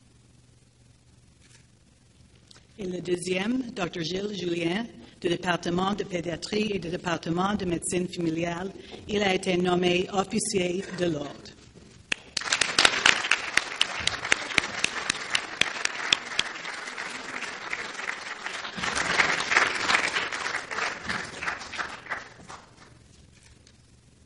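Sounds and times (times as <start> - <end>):
speech: 2.8 - 11.6
audience applause: 12.1 - 23.0.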